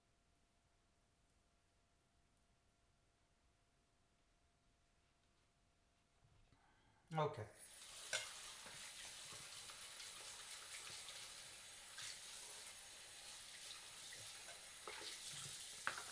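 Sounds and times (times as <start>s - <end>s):
speech: 7.1s - 7.7s
running water rinsing a bowl at a sink: 7.5s - 16.0s.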